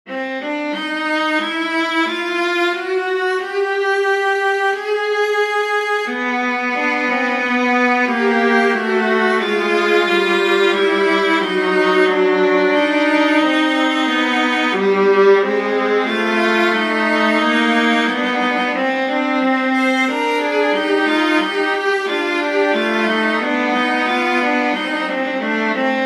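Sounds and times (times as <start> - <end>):
viola duet playing a canon: 0.1 - 26.0.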